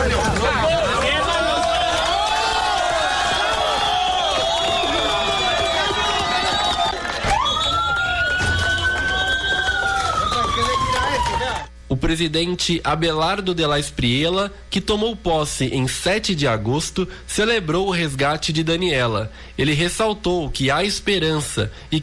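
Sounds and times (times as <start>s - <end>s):
rescuers and relatives shouting with joy: 0.0s - 11.7s
siren wailing: 3.4s - 11.7s
speech: 12.1s - 22.0s.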